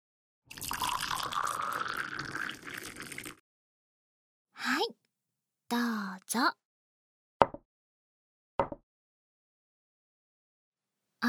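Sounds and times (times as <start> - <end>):
hot green tea poured from a teapot into a teacup: 0.5 - 3.4
speech: 5.7 - 6.6.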